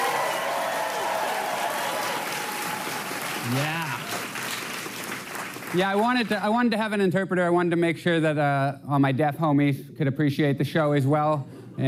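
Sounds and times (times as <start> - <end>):
audience applause: 0.0 - 6.4
speech: 3.5 - 3.8, 5.7 - 11.8.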